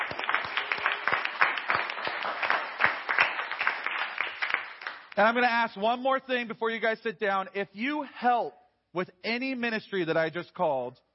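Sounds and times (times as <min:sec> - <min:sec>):
audience round of applause: 0:00.0 - 0:05.1
speech: 0:05.2 - 0:11.1.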